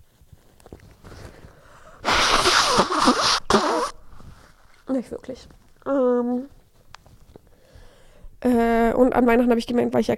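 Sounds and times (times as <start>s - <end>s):
soft rustling: 0.0s - 7.8s
person blowing nose: 2.0s - 4.5s
speech: 5.0s - 6.6s, 8.4s - 10.1s.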